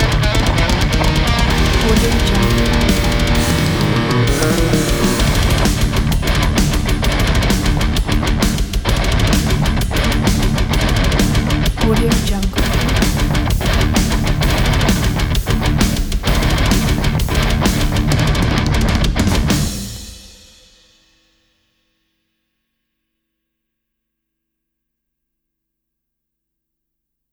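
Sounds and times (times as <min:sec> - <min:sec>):
technical metal trailer music: 0:00.0 - 0:11.8, 0:12.6 - 0:19.9.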